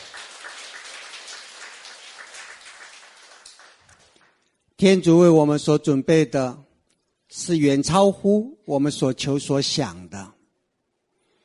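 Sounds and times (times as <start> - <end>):
audience applause: 0.0 - 4.4
speech: 4.8 - 6.6, 7.3 - 10.3.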